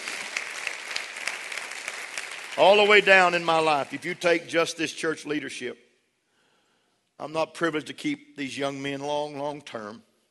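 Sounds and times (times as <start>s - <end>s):
audience clapping hands: 0.0s - 4.4s
speech: 2.6s - 5.8s, 7.2s - 10.1s.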